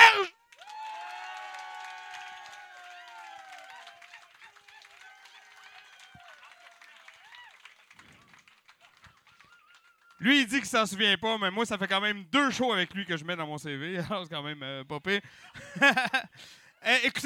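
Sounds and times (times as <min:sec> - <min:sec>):
audience applause and cheering: 0:00.0 - 0:10.4
laughter: 0:08.1 - 0:10.5, 0:15.4 - 0:16.4
speech: 0:10.2 - 0:17.2.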